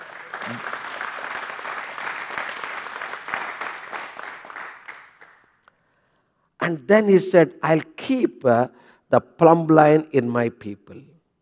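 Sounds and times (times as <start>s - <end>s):
audience applause: 0.0s - 5.4s
speech: 0.5s - 0.7s, 6.6s - 11.1s.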